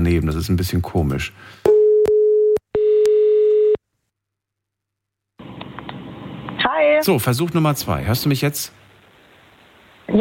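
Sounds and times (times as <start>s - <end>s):
speech: 0.0s - 1.7s, 6.8s - 8.8s
telephone line tones on a call-back: 1.7s - 3.8s.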